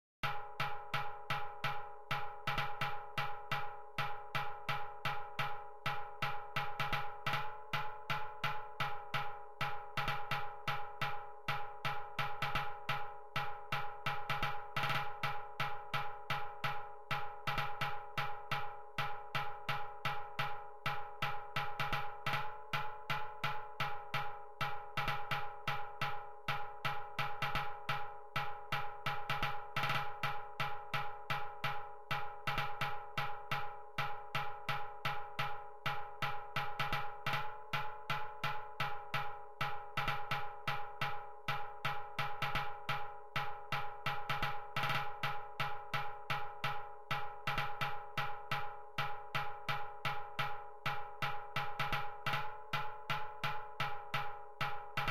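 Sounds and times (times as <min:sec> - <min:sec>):
percussion: 0:00.2 - 0:55.1.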